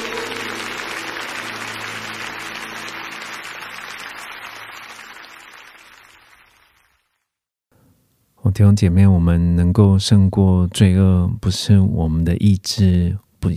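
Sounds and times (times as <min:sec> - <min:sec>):
audience clapping hands: 0:00.0 - 0:07.4
speech: 0:08.5 - 0:13.5.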